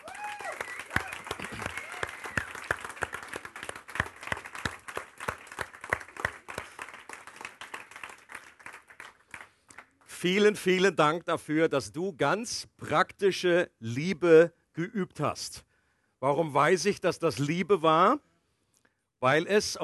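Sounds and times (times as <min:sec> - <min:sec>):
voices cheering: 0:00.0 - 0:02.8
audience applause: 0:00.0 - 0:10.0
speech: 0:10.2 - 0:18.3, 0:19.2 - 0:19.8.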